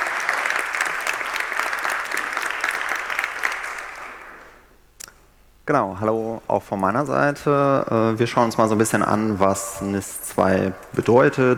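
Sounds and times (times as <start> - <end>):
audience applause: 0.0 - 4.7
speech: 5.7 - 11.5.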